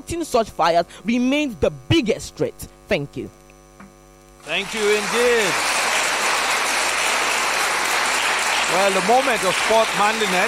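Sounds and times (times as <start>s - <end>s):
speech: 0.1s - 3.4s, 4.4s - 5.7s, 8.7s - 10.4s
applause after a debate speech: 4.4s - 10.4s.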